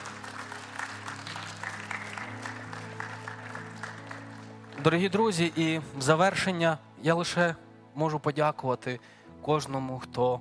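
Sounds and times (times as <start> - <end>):
audience applause: 0.0 - 5.8
speech: 4.8 - 10.4.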